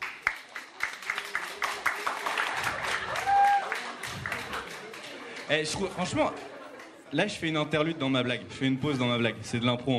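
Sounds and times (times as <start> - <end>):
audience applause: 0.0 - 7.0
speech: 5.5 - 6.5, 7.1 - 9.9.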